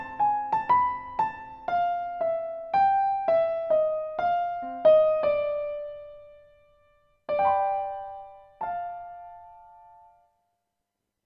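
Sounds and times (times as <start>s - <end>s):
piano practice: 0.0s - 10.3s.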